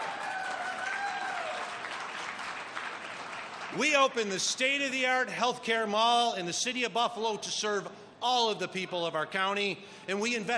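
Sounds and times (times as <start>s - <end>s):
crowd applauding: 0.0s - 4.3s
speech: 3.7s - 10.5s.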